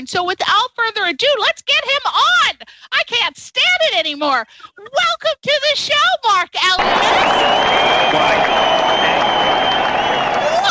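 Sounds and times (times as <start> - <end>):
speech: 0.0 - 9.3
stadium applause and crowd noise sound effect: 6.8 - 10.7.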